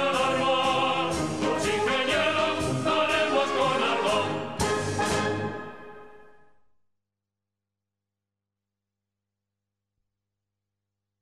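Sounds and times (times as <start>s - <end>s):
anthem: 0.0s - 6.5s.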